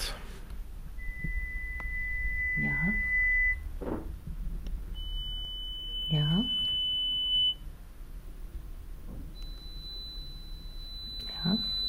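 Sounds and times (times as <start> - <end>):
high-pitched hearing test tone beeps: 1.0 - 3.7, 5.0 - 7.6, 9.4 - 11.8.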